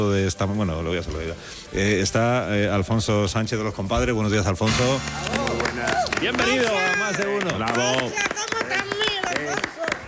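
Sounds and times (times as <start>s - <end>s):
speech: 0.0s - 8.3s
one person clapping rhythmically in a studio: 5.1s - 10.0s.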